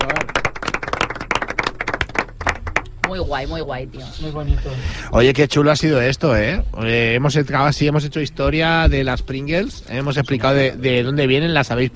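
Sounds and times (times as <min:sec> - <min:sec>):
audience clapping: 0:00.0 - 0:03.4
speech: 0:03.1 - 0:11.9.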